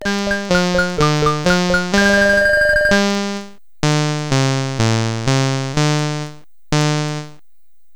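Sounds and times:
SID stereo chiptune game music: 0:00.0 - 0:07.4.

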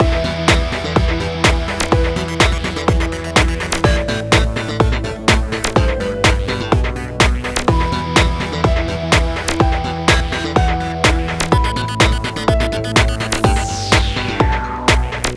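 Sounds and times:
background music for a waiting room scene: 0:00.0 - 0:15.3.

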